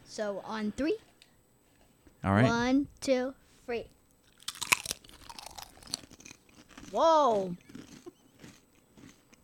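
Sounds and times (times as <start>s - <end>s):
speech: 0.2s - 1.1s, 2.2s - 4.0s, 6.9s - 7.6s
crunching on thick potato chips: 4.2s - 9.4s.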